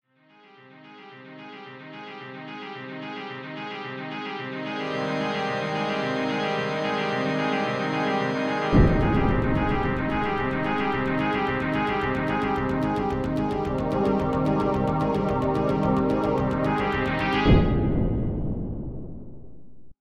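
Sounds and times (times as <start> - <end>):
deep cinematic intro music: 4.8 - 19.5.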